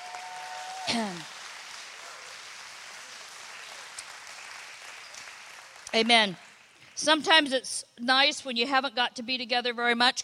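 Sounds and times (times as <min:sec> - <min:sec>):
audience hand clapping: 0:00.0 - 0:07.1
speech: 0:00.9 - 0:01.4, 0:06.0 - 0:06.4, 0:07.0 - 0:10.2.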